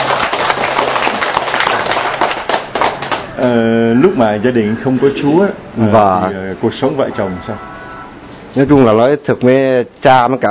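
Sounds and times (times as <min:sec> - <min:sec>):
audience applause: 0:00.0 - 0:03.4
speech: 0:03.5 - 0:07.7, 0:08.5 - 0:10.4.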